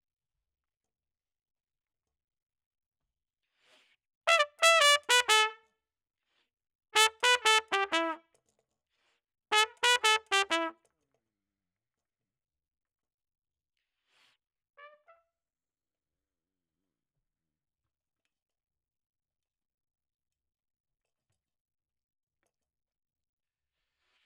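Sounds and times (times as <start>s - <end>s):
trumpet: 4.3s - 5.7s, 7.0s - 8.3s, 9.5s - 10.9s.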